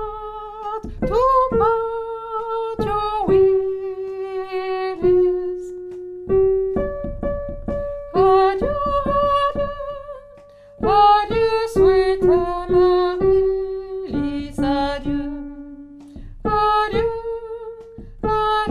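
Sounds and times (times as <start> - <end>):
alto singing: 0.0 - 18.6.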